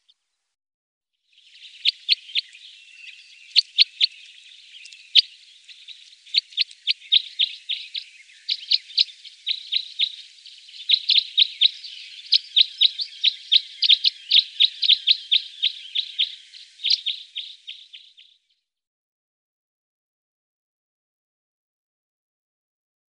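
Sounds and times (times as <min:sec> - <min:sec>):
two-barred crossbill calling: 0:01.4 - 0:18.2.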